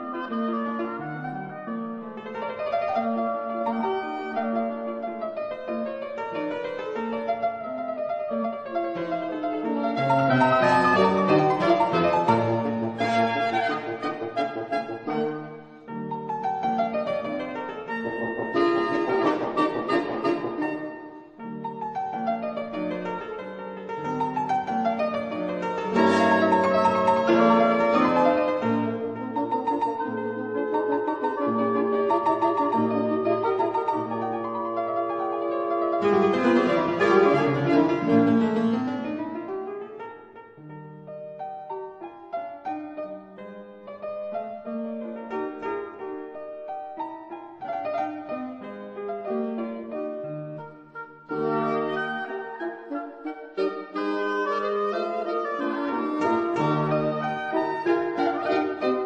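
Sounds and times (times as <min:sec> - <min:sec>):
quintet for piano and winds: 0:00.0 - 0:59.0.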